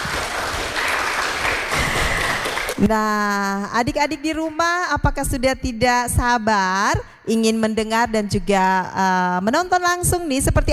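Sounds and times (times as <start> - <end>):
audience applause: 0.0 - 2.8
speech: 2.8 - 10.7.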